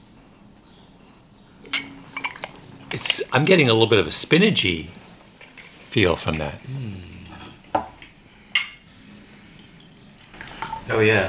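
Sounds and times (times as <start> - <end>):
porcelain teacup lid clinking against its cup: 1.6 - 3.2, 7.8 - 8.8
speech: 2.9 - 5.0, 6.0 - 7.1, 10.9 - 11.2.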